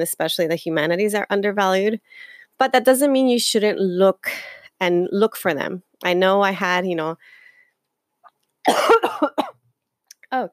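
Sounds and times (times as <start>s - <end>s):
speech: 0.0s - 7.4s, 8.7s - 9.4s, 10.3s - 10.5s
harsh coughs from someone suffering a cold: 8.7s - 9.6s.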